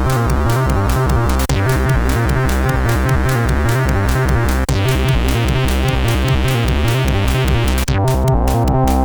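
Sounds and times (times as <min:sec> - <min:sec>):
industrial sound: 0:00.0 - 0:09.0.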